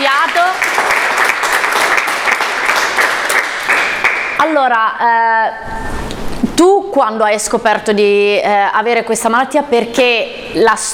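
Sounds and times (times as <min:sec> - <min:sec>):
audience applause: 0:00.0 - 0:04.4
speech: 0:04.6 - 0:05.9, 0:06.6 - 0:10.9.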